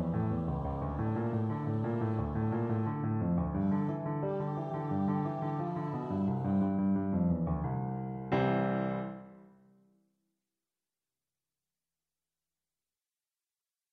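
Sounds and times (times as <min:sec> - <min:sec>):
piano: 0:00.0 - 0:09.9.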